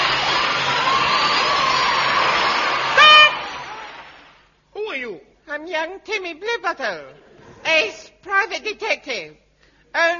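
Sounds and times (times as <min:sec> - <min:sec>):
recorded audience applause played from a record in a comedy sketch: 0:00.0 - 0:04.5
speech: 0:05.6 - 0:10.1.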